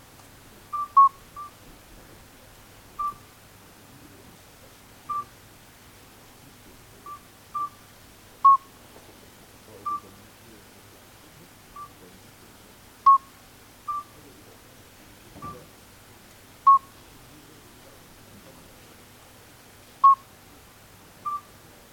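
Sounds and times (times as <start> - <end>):
midwife toad piping: 0.7 - 1.6, 3.0 - 3.3, 5.1 - 5.3, 7.1 - 7.8, 8.4 - 8.7, 9.8 - 10.1, 13.0 - 13.3, 13.9 - 14.2, 20.0 - 20.3, 21.2 - 21.5.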